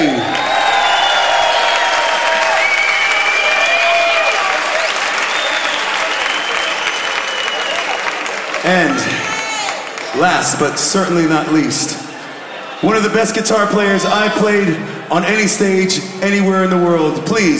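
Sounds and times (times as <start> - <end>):
audience cheering and whistles: 0.0 - 9.9
audience applause: 0.0 - 11.3
speech: 10.4 - 12.0, 12.8 - 17.5.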